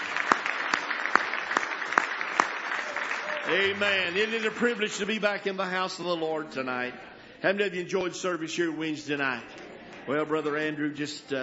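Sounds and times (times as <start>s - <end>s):
audience hand clapping in praise: 0.0s - 5.3s
speech: 3.5s - 11.4s.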